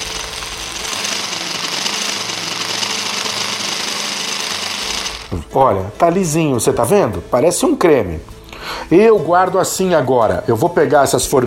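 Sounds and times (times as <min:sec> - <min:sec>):
food processor blending bananas: 0:00.0 - 0:05.5
speech: 0:05.3 - 0:11.4.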